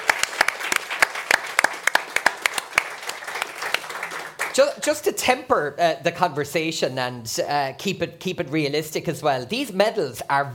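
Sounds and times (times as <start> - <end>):
audience round of applause: 0.0 - 4.7
speech: 4.6 - 10.5.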